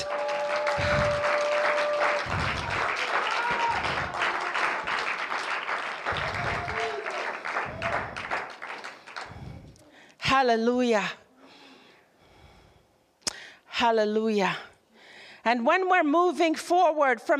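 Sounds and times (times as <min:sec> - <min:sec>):
audience clapping hands: 0:00.0 - 0:09.8
speech: 0:10.4 - 0:11.2, 0:13.8 - 0:14.7, 0:15.4 - 0:17.3.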